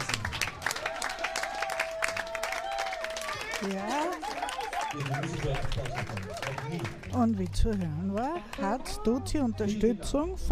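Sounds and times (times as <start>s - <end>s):
crowd applause: 0.0s - 9.0s
excited voices whoops and shouts: 0.8s - 5.0s
speech: 3.6s - 10.5s.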